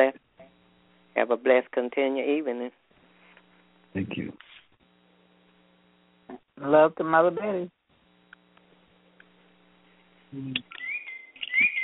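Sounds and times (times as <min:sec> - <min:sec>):
speech: 0:01.2 - 0:02.8, 0:03.9 - 0:04.4, 0:06.6 - 0:07.8, 0:10.3 - 0:10.8
person whistling: 0:10.8 - 0:11.8.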